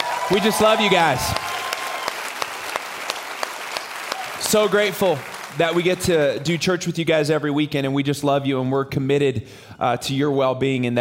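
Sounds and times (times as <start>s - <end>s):
audience applause: 0.0s - 6.6s
speech: 0.3s - 1.5s, 4.5s - 11.0s.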